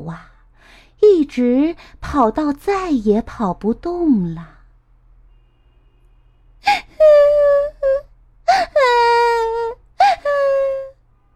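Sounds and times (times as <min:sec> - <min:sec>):
speech: 0:00.0 - 0:04.6
voice imitating a child crying: 0:06.7 - 0:11.0.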